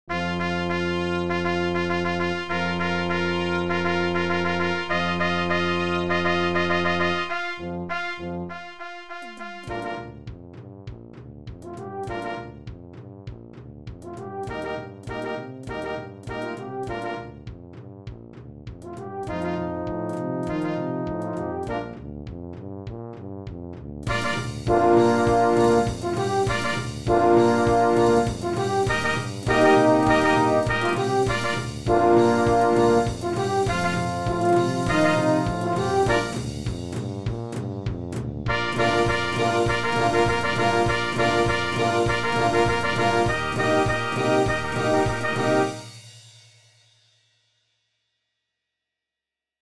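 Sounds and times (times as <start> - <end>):
trumpet rock music: 0.1 - 10.4, 11.6 - 12.8, 14.0 - 17.7, 18.8 - 22.1, 24.1 - 37.6, 38.5 - 46.1.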